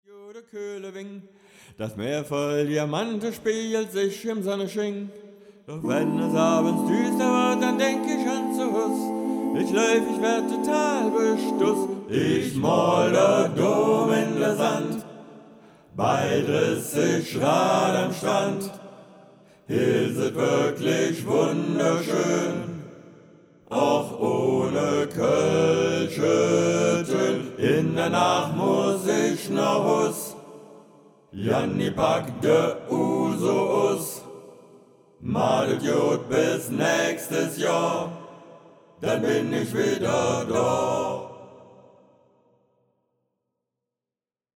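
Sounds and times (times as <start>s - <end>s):
full ensemble a cappella singing: 0.0s - 5.1s, 5.7s - 42.3s.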